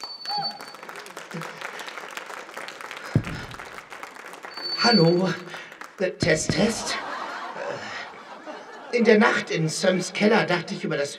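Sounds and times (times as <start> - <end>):
audience applause: 0.0 - 6.0
laughter: 0.8 - 2.1, 6.3 - 11.1
speech: 1.3 - 1.5, 4.8 - 7.1, 8.9 - 11.1.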